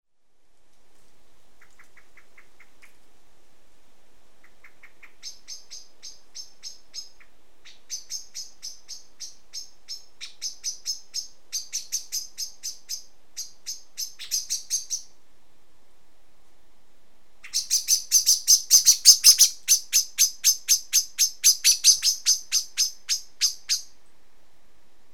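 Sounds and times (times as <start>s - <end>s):
common blackbird chink calls: 4.4s - 15.1s, 17.4s - 24.0s.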